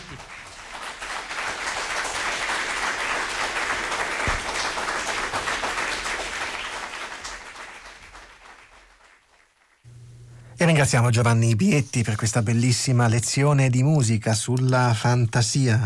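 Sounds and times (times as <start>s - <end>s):
audience applause: 0.0s - 9.8s
speech: 10.7s - 15.8s.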